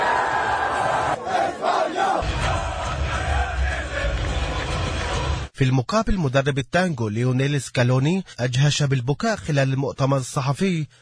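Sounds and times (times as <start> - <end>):
football crowd roaring and chanting celebrating with Spain's players after tournament final win: 0.0 - 5.5
speech: 5.6 - 10.9.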